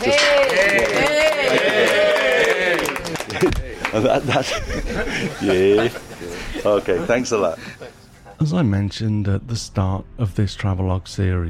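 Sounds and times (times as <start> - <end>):
speech: 0.0 - 0.3, 3.9 - 7.8, 8.4 - 11.4
group applause: 0.0 - 4.6
laughter: 0.0 - 8.4.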